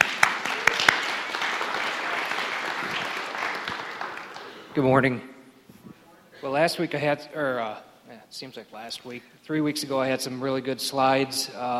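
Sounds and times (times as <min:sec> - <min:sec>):
audience applauding to welcome a speaker: 0:00.0 - 0:04.9
speech: 0:04.8 - 0:05.3, 0:06.4 - 0:11.7.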